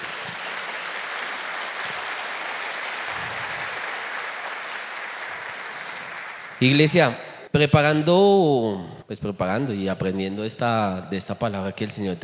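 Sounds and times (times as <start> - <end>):
audience applauding: 0.0 - 7.1
speech: 6.6 - 12.2.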